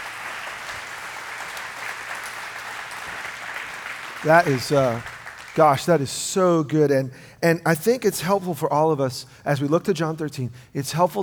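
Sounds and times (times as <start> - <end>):
audience applause: 0.0 - 6.0
speech: 4.2 - 11.2.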